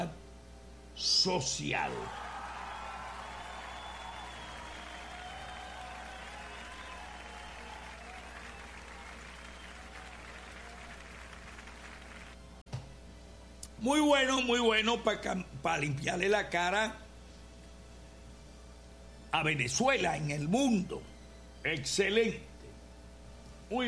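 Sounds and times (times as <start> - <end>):
speech: 1.0 - 2.2, 13.8 - 17.0, 19.3 - 22.5
applause: 2.0 - 12.4.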